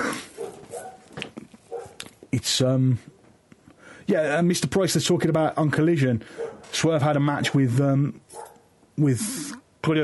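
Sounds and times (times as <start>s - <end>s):
dog barking: 0.4s - 1.1s, 1.7s - 2.0s, 6.3s - 6.7s, 8.3s - 8.7s
speech: 2.3s - 3.1s, 4.1s - 10.0s.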